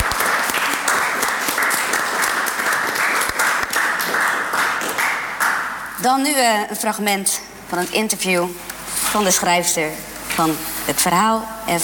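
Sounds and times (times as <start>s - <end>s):
audience applause: 0.0s - 5.8s
speech: 6.0s - 11.8s.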